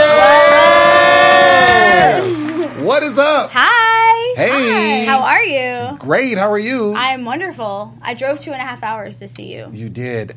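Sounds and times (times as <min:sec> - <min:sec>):
studio audience cheering and whooping: 0:00.0 - 0:03.4
speech: 0:04.7 - 0:10.3.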